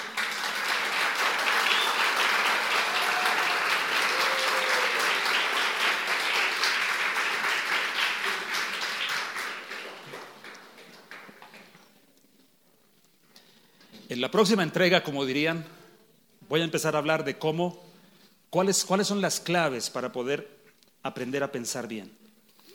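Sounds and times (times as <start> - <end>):
audience applause: 0.0 - 11.7
speech: 14.2 - 15.8, 16.5 - 17.9, 18.5 - 22.2.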